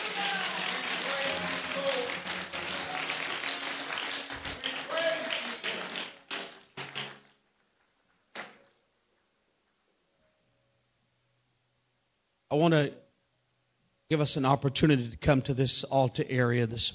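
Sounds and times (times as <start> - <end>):
audience clapping hands: 0.0 - 7.4
speech: 12.5 - 13.0, 14.1 - 16.9.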